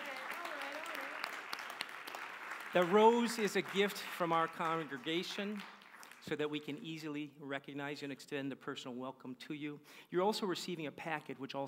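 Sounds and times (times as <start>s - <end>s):
congregation applauding to welcome first-time visitors: 0.0s - 6.6s
speech: 2.7s - 11.6s.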